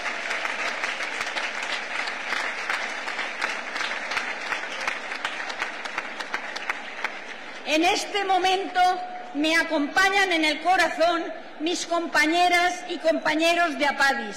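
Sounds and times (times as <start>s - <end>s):
audience applause: 0.0s - 7.6s
speech: 7.7s - 14.3s.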